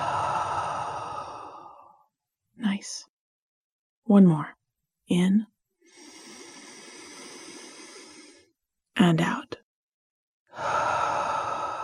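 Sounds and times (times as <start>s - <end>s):
deep slow breath out through the mouth during a relaxation exercise: 0.0s - 2.0s, 5.9s - 8.5s, 10.5s - 11.8s
speech: 2.8s - 3.1s, 4.1s - 6.1s, 9.0s - 9.6s.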